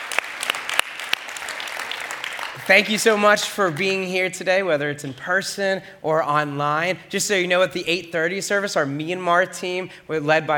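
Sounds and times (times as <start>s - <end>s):
crowd applauding: 0.0s - 4.0s
speech: 2.7s - 10.5s.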